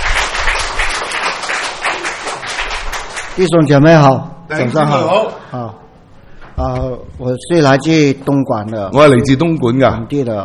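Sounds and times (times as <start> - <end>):
audience applause: 0.0 - 3.4
speech: 3.4 - 5.8, 6.6 - 10.4.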